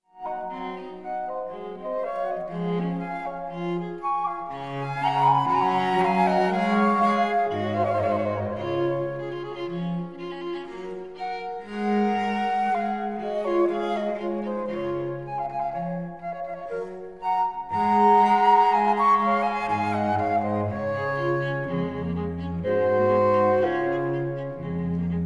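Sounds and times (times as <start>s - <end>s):
quartet in C major for two flutes, viola and cello: 0.0s - 25.2s.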